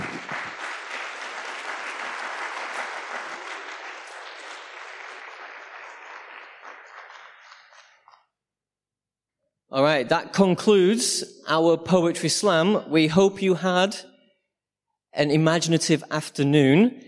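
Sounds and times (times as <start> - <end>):
audience applause: 0.0 - 8.2
speech: 9.7 - 14.1, 15.2 - 17.0.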